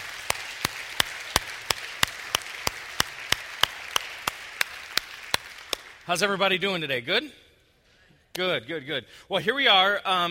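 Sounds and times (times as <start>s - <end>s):
audience applauding: 0.0s - 6.1s
speech: 6.1s - 7.4s, 8.4s - 10.2s.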